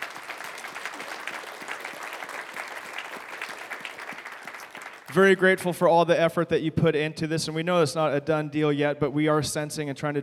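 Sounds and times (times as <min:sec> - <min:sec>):
congregation applauding: 0:00.0 - 0:05.5
speech: 0:05.2 - 0:10.2.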